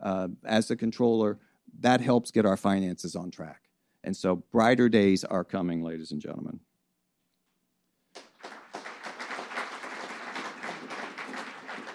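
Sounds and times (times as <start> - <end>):
speech: 0.0 - 6.7
audience clapping: 8.1 - 11.9.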